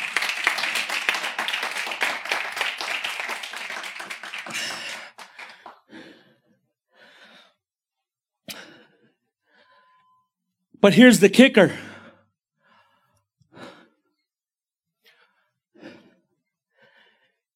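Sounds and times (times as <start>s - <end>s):
round of applause: 0.0s - 5.8s
speech: 10.8s - 11.9s.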